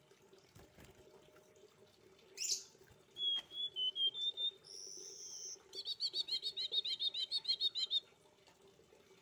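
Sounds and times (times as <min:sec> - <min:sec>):
streaked spiderhunter song of high scratchy chirps and rasping bursts: 0:02.4 - 0:08.1.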